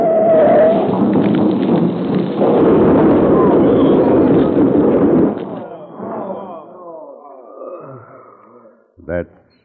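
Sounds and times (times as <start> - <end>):
flaming freight car tipping over and crashing: 0.0 - 6.7.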